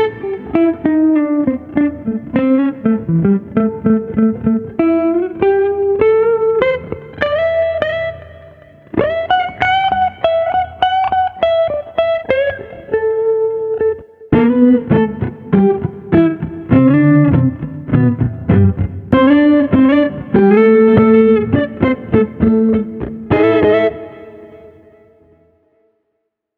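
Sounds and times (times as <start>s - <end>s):
smooth jazz guitar at 100 bpm: 0.0s - 25.2s.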